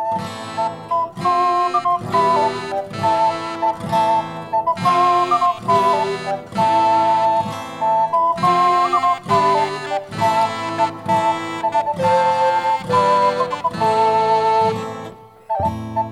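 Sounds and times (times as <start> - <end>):
fanfare: 0.1 - 16.0.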